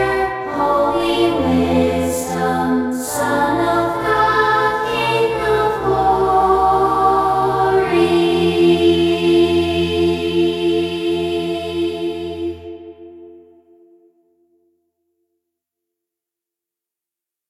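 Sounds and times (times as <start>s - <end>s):
choir singing: 0.0s - 13.8s.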